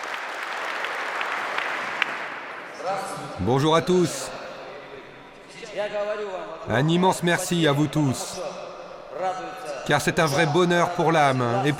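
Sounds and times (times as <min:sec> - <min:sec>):
audience applause: 0:00.0 - 0:02.7
speech: 0:02.9 - 0:04.4, 0:05.8 - 0:11.7.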